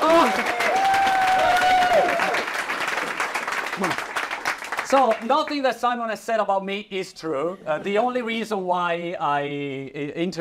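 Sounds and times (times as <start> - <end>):
audience applause: 0.0 - 5.5
speech: 4.9 - 10.3.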